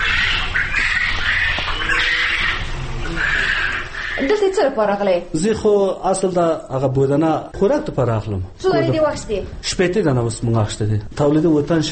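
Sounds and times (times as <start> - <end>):
birds squawking and cackling at a poultry meat farm: 0.0 - 5.2
speech: 4.2 - 11.8.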